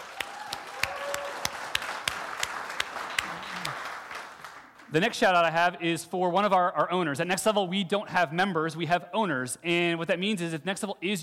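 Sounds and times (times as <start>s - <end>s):
audience applause: 0.0s - 5.0s
speech: 4.9s - 11.2s.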